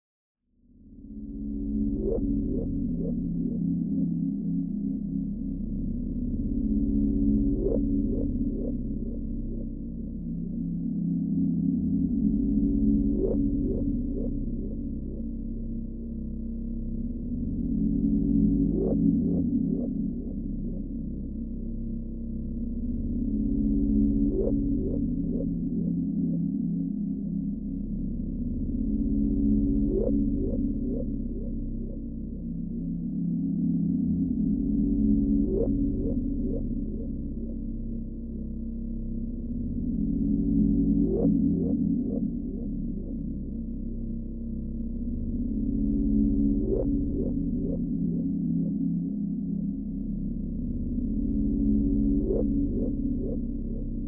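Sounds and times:
ambience: 0:00.6 - 0:54.0.

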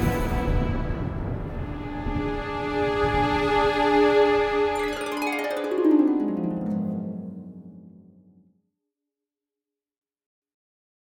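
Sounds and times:
cinematic intro music: 0:00.0 - 0:08.5.

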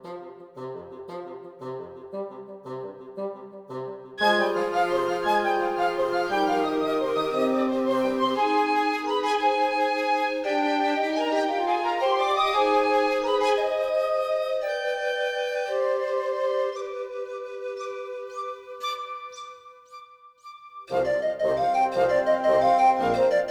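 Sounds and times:
woodwind music: 0:04.2 - 0:23.4.

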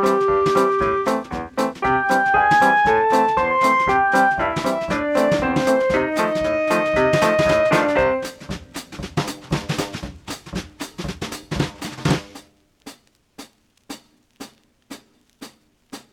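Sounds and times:
survival music band playing: 0:00.0 - 0:09.0.

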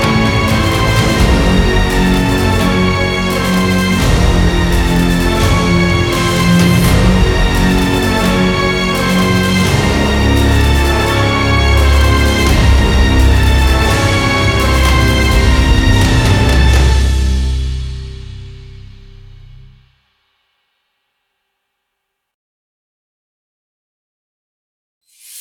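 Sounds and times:
dramatic knight fight music: 0:00.0 - 0:19.4.

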